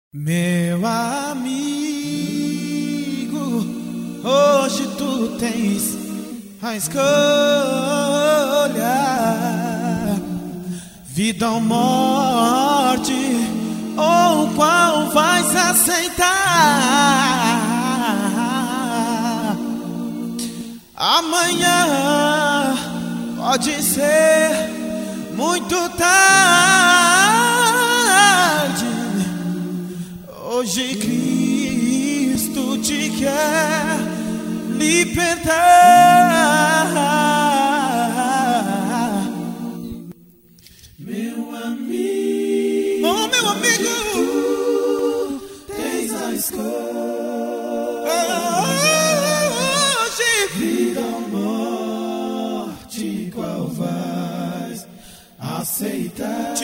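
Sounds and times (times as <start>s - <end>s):
a cappella singing: 0.2s - 56.6s.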